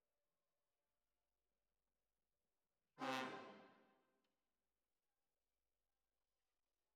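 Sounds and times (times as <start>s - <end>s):
tuba: 3.0s - 3.7s.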